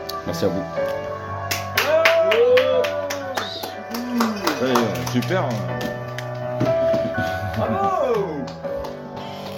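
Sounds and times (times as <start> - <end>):
speech: 0.3 - 1.0, 4.6 - 5.8
applause: 1.5 - 6.6, 7.3 - 9.5.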